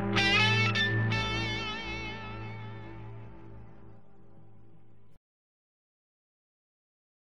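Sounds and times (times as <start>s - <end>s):
slide guitar solo: 0.1s - 3.5s.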